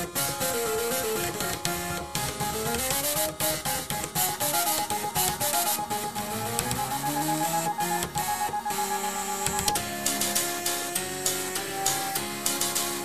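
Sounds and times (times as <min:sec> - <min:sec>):
rhythmic clicks: 0:00.2 - 0:13.0
floppy drives, hard drives and scanners buzzing out a tune: 0:00.6 - 0:10.9.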